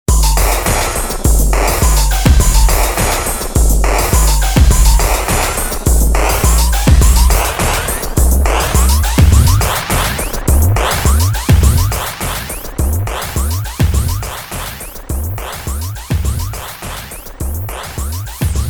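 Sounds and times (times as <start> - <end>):
Sequential Prophet X synthesizer: 0.1 - 18.6
grimy drums: 0.1 - 18.6.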